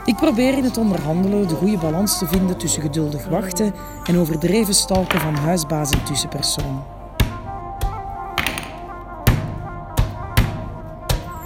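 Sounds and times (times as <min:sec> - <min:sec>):
speech: 0:00.2 - 0:07.0
rubber stamps thumping onto paper: 0:07.2 - 0:11.3.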